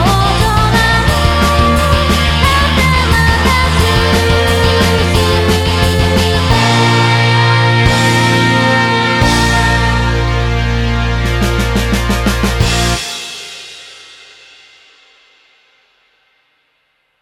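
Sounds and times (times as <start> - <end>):
karaoke singing: 0.0 - 13.0.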